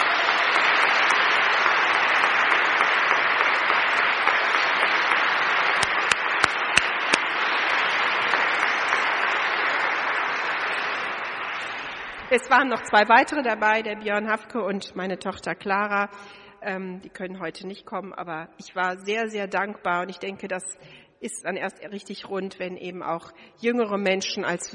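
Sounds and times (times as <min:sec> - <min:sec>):
audience applause: 0:00.0 - 0:12.6
speech: 0:12.4 - 0:24.7.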